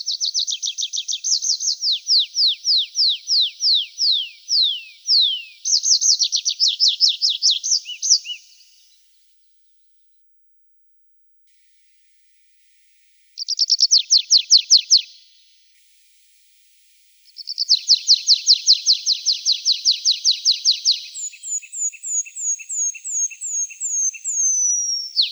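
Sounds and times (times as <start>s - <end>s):
tree pipit song: 0.0s - 9.1s, 13.4s - 15.3s, 17.3s - 25.3s.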